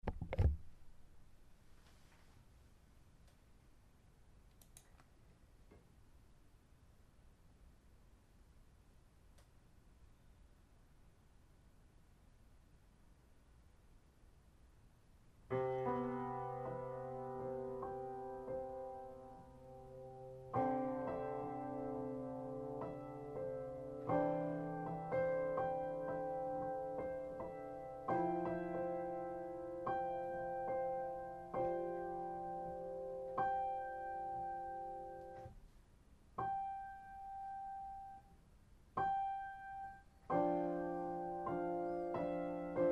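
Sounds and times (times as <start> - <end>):
piano: 15.5 - 35.6, 36.4 - 38.3, 38.9 - 42.8.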